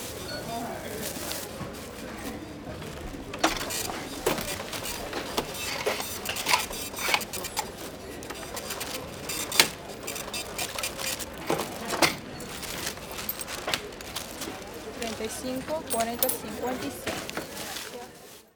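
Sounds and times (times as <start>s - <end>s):
items being bagged at a supermarket checkout: 0.0s - 18.5s
people talking in Spanish in a supermarket: 0.0s - 18.5s
supermarket cash register: 2.5s - 17.5s
coins clinking at a supermarket checkout: 3.4s - 17.5s.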